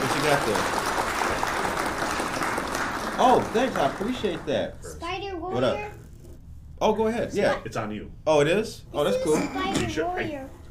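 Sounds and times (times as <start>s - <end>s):
crowd applause: 0.0s - 4.6s
speech: 0.2s - 0.9s, 3.2s - 4.9s, 5.5s - 6.0s, 6.8s - 10.6s.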